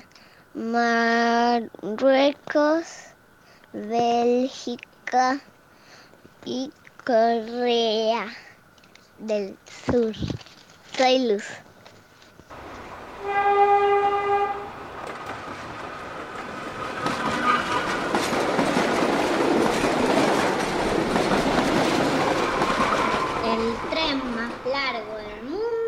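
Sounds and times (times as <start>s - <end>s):
speech: 0.6s - 3.1s, 3.7s - 5.5s, 6.4s - 8.5s, 9.2s - 11.6s
long train in Mauritania pulled by four locomotives rumbling: 12.5s - 25.8s
horn-like tone of a long train in Mauritania: 13.2s - 14.8s, 17.2s - 18.0s.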